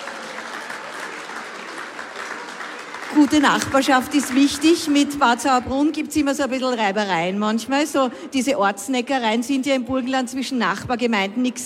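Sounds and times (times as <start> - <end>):
audience applause: 0.0 - 5.1
speech: 3.1 - 11.6.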